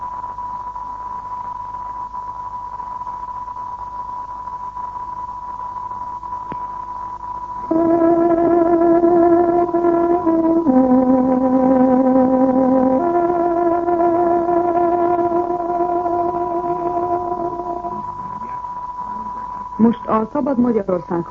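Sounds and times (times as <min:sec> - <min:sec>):
radio time signal played on tárogató: 0:05.0 - 0:20.8
speech: 0:20.2 - 0:21.3.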